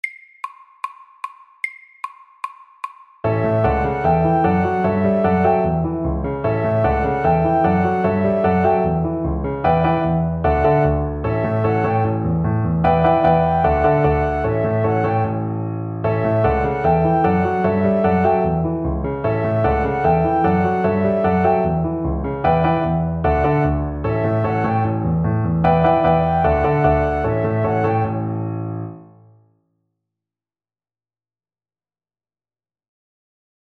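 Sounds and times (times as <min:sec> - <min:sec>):
honky tonk music: 0:03.2 - 0:28.4.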